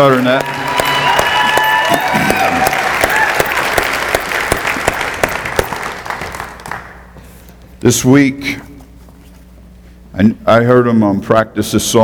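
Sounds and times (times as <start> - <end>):
speech: 0.0 - 0.6, 7.8 - 8.7, 10.2 - 12.0
crowd clapping hands in praise: 0.0 - 7.1
voices whooping and calling out: 0.1 - 3.8.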